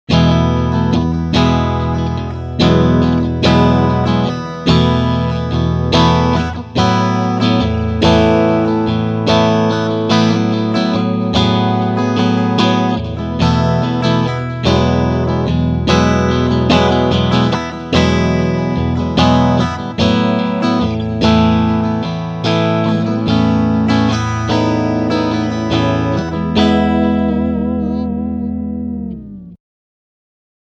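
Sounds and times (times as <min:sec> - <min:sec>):
electric guitar strumming on front single-coil pickups: 0:00.1 - 0:29.6.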